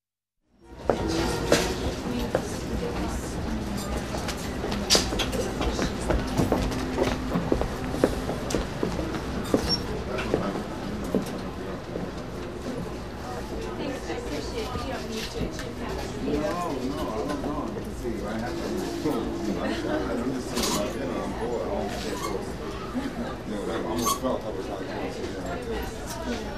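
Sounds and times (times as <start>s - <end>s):
shop on a busy street: 0.6s - 26.5s.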